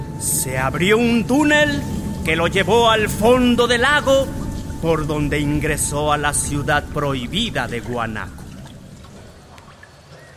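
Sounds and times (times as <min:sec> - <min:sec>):
low rumble: 0:00.0 - 0:09.9
speech: 0:00.2 - 0:08.4
water falling from a fountain: 0:01.4 - 0:10.3.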